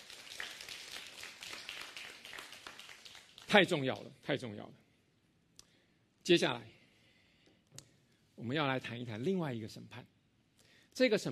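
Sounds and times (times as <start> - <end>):
audience clapping hands: 0.0 - 4.1
speech: 3.5 - 4.8, 6.3 - 6.8, 8.4 - 10.2, 11.0 - 11.3.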